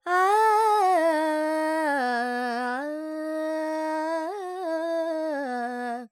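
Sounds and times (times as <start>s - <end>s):
Carnatic female vocal alaps in Phrygian mode, dry: 0.0s - 6.0s.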